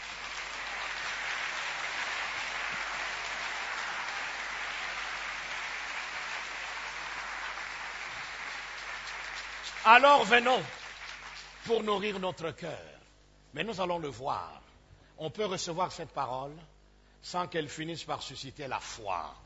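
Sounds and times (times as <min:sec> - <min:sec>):
church congregation applauding: 0:00.0 - 0:12.5
speech: 0:09.8 - 0:10.8, 0:11.7 - 0:12.9, 0:13.5 - 0:14.6, 0:15.2 - 0:19.4.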